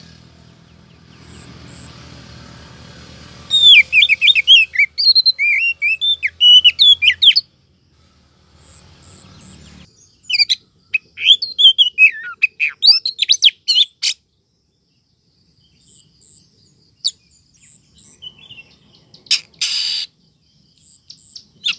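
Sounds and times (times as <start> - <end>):
Oriental magpie-robin rising whistle: 3.5 - 7.5, 10.2 - 14.2, 18.2 - 20.1.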